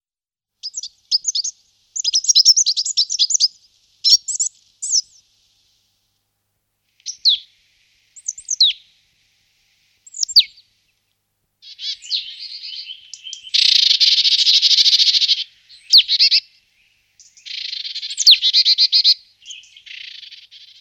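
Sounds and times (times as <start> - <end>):
marsh tit chattering: 0.6 - 5.2, 7.0 - 7.5, 8.2 - 8.8, 10.1 - 10.7, 11.6 - 16.6, 17.2 - 20.8.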